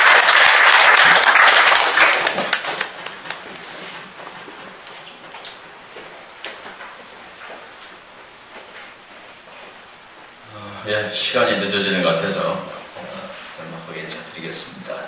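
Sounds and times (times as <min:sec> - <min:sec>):
audience applause: 0:00.0 - 0:03.7
speech: 0:11.0 - 0:12.7.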